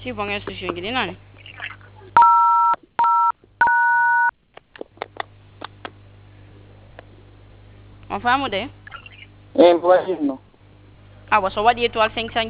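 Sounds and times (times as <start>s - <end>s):
speech: 0.0s - 2.2s, 8.1s - 8.8s, 9.6s - 10.4s, 11.3s - 12.4s
telephone keypad DTMF dialing tones: 2.2s - 4.3s.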